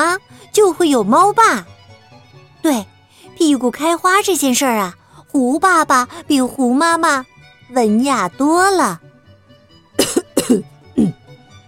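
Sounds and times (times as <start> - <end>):
speech: 0.2 - 1.7, 2.6 - 9.0, 10.0 - 11.2
throat clearing: 10.0 - 11.2.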